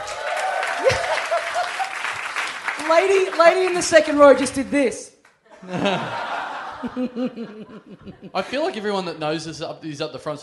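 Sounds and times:
audience applause: 0.0s - 4.4s
laughter: 0.7s - 2.2s, 5.5s - 9.4s
speech: 2.9s - 6.2s, 6.8s - 10.4s.

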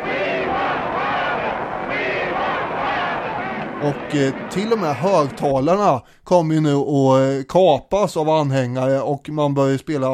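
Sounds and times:
crowd cheering and chanting: 0.0s - 5.9s
speech: 3.8s - 10.1s.

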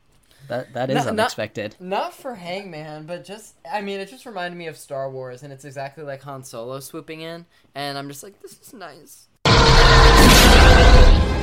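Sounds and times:
speech: 0.5s - 9.3s
plane crash: 9.5s - 11.4s.

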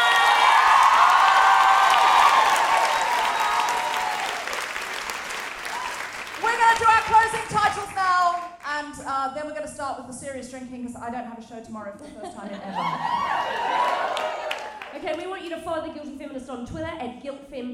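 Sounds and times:
audience applause and cheering: 0.0s - 8.6s, 12.8s - 15.1s
speech: 9.3s - 13.9s, 15.0s - 17.7s
laughter: 12.0s - 14.5s.

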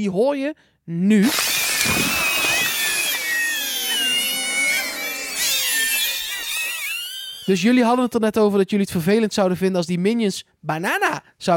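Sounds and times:
speech: 0.0s - 2.2s, 7.5s - 11.5s
screaming plant toy shrieking electronically: 1.2s - 8.0s.

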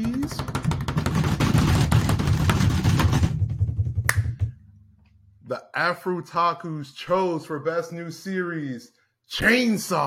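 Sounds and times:
quick drum roll: 0.3s - 4.6s
speech: 5.5s - 10.0s.

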